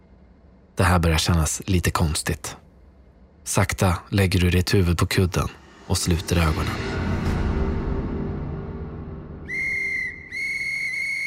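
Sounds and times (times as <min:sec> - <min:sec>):
low rumbling background: 0:00.0 - 0:10.9
speech: 0:00.8 - 0:02.6, 0:03.4 - 0:07.0
whistle blasts: 0:09.4 - 0:11.2.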